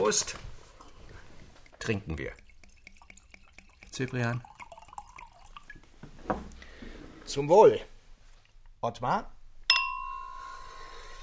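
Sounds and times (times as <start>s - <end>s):
speech: 0.1s - 0.5s, 1.8s - 2.4s, 4.0s - 4.5s, 7.3s - 7.9s, 8.8s - 9.4s
drink being poured for guests: 0.7s - 5.9s.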